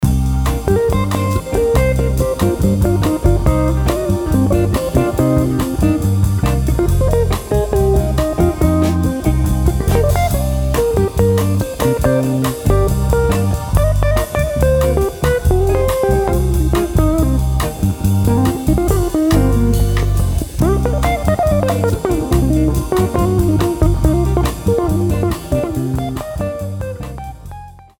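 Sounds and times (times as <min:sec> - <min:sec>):
bossa blues band backing track: 0:00.0 - 0:27.9
drums: 0:00.0 - 0:27.9.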